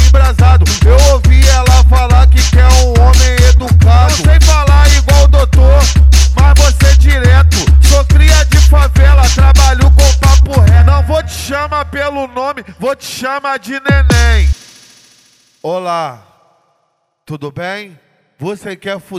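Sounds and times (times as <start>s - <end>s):
car sound system playing music: 0.0s - 14.8s.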